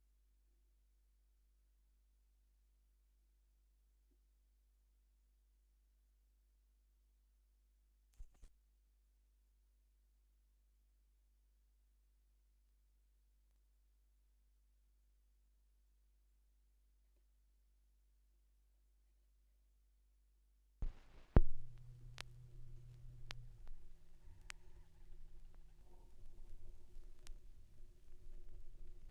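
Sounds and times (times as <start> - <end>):
vinyl record noise: 20.8 - 29.1.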